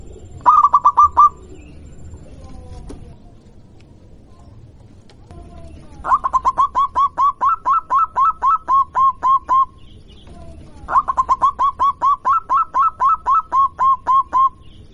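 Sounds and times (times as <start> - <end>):
zebra dove cooing song: 0.0 - 2.4, 5.4 - 14.6.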